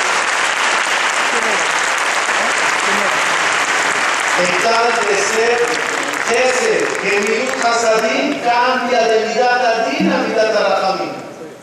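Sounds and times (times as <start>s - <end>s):
audience applause: 0.0s - 8.8s
faint murmurs of voices: 1.2s - 11.6s
speech: 4.4s - 11.2s.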